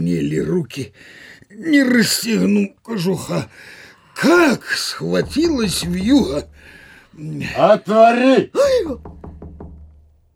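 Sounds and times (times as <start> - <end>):
speech: 0.0 - 9.3
knocking on a door: 5.2 - 7.6, 8.6 - 10.3.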